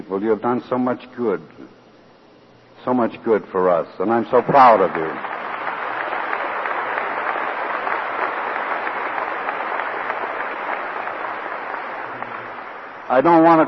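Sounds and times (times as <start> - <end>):
speech: 0.1 - 1.8, 2.8 - 5.3, 13.1 - 13.6
audience clapping: 4.3 - 13.6.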